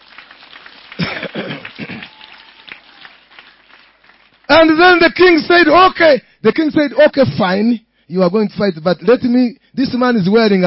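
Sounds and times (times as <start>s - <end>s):
audience hand clapping: 0.0s - 5.3s
speech: 4.7s - 10.6s.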